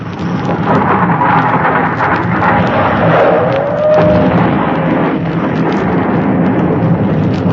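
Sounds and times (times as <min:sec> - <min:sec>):
explosion: 0:00.3 - 0:07.5.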